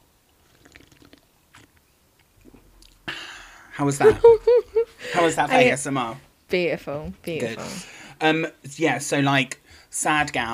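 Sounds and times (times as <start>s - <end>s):
person sipping Vimto Zero: 0.4s - 1.8s
speech: 3.8s - 10.5s
laughter: 3.9s - 5.7s.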